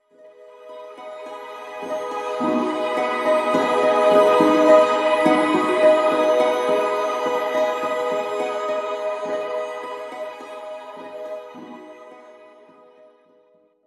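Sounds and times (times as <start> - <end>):
melody: 0.8 - 11.6.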